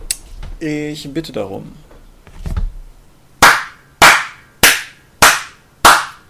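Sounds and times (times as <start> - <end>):
speech: 0.6 - 1.9
hand claps: 3.4 - 6.2.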